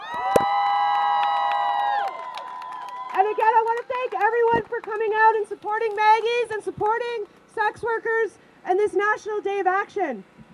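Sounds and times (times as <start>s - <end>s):
crowd cheering and whooping: 0.0s - 4.2s
speech: 3.2s - 10.3s.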